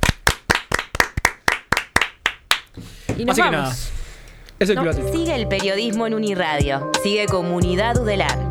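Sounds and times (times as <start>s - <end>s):
hand clapping: 0.0s - 2.7s
speech: 3.2s - 4.0s, 4.6s - 8.4s.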